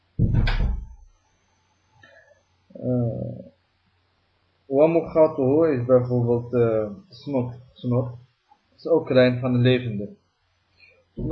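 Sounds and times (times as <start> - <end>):
door shutting with a heavy booming thud: 0.2 - 1.0
door creaking as it settles: 0.2 - 1.1
speech: 4.8 - 8.2, 8.8 - 10.2, 11.2 - 11.3.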